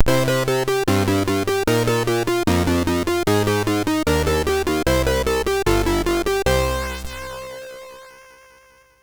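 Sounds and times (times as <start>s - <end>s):
MOS6581R3 sound chip music: 0.1s - 7.5s.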